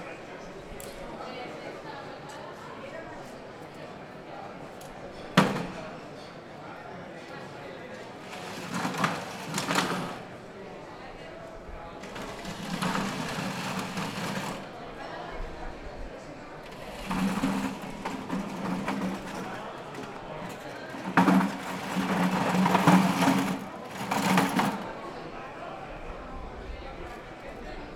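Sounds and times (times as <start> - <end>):
chairs being collected in a plaza: 5.2 - 5.9, 8.2 - 10.3, 12.0 - 14.8, 16.6 - 25.0.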